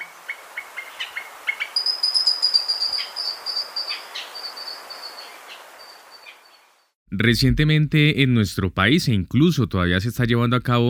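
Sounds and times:
mountain grackle trill: 0.8 - 6.6
speech: 7.2 - 10.8.

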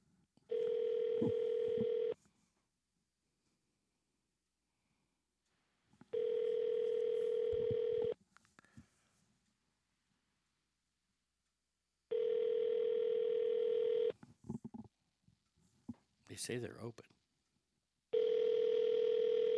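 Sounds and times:
telephone ringback tone on a call to an Alaska number: 0.5 - 2.2, 6.1 - 8.2, 12.1 - 14.2, 18.2 - 19.5
speech: 16.4 - 17.2.

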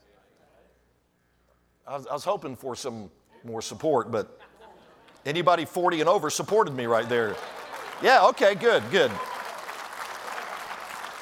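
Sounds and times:
speech: 1.9 - 4.5, 5.2 - 9.3
audience applause: 6.7 - 11.2.

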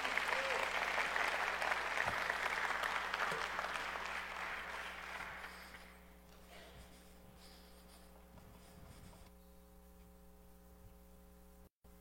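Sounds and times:
crowd applause: 0.0 - 6.0
low steady hum: 0.0 - 11.9.

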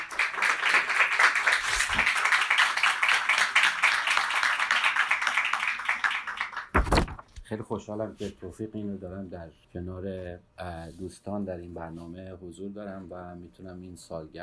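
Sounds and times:
audience applause for a speaker: 0.0 - 6.8
speech: 7.5 - 14.4.

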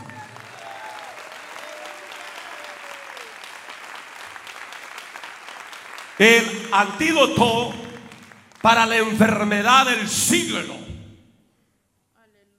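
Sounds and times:
audience applause: 0.0 - 9.2
speech: 6.2 - 7.8, 8.6 - 10.9.

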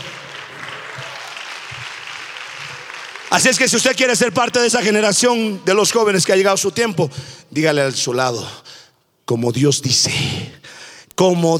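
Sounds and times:
audience applause: 0.0 - 4.3
speech: 3.3 - 8.6, 9.3 - 11.5.

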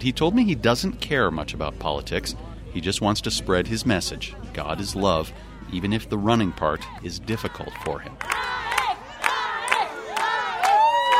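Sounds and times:
speech: 0.0 - 8.5
kindergarten children cheering a marathon runner: 5.6 - 11.1.

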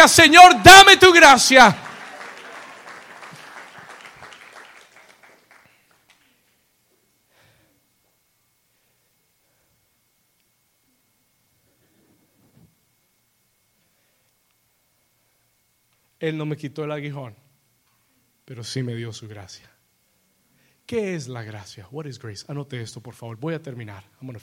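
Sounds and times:
speech: 0.0 - 1.9, 16.2 - 17.4, 18.5 - 19.8, 20.9 - 24.4
audience applause: 1.4 - 6.4.

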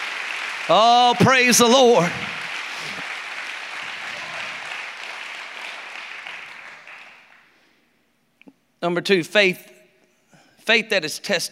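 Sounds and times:
audience clapping: 0.0 - 7.8
speech: 0.7 - 2.3, 8.8 - 9.7, 10.6 - 11.5.

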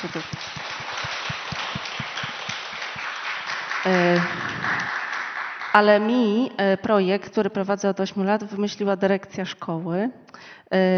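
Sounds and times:
speech: 0.0 - 0.7, 3.8 - 4.3, 5.8 - 10.9
audience applause: 0.0 - 6.0.

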